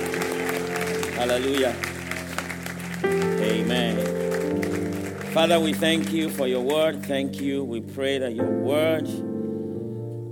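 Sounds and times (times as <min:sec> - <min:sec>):
audience applauding: 0:00.0 - 0:07.3
speech: 0:01.2 - 0:01.9, 0:03.0 - 0:04.6, 0:05.3 - 0:09.3.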